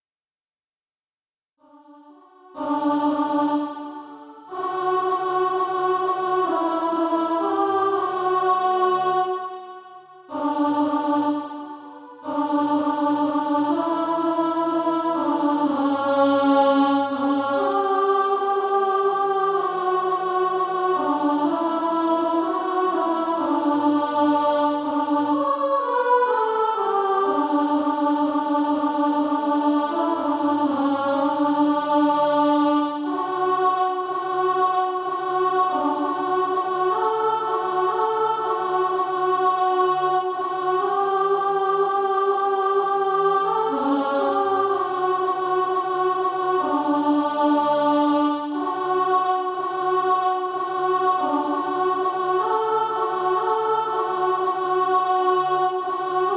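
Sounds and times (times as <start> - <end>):
alto voice singing practice music: 1.6 - 56.3.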